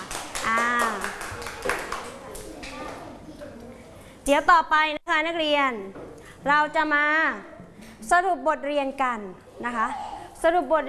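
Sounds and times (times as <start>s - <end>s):
class clapping: 0.0s - 2.8s
speech: 4.3s - 10.8s.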